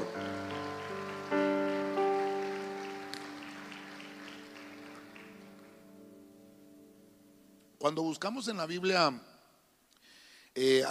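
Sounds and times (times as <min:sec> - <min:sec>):
audience clapping hands: 0:00.0 - 0:05.9
speech: 0:07.8 - 0:09.3, 0:10.6 - 0:10.8.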